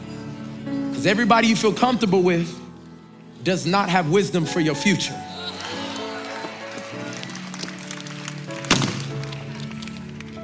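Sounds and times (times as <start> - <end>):
speech: 1.0 - 2.6, 3.4 - 5.3
wooden door slamming: 8.7 - 9.2.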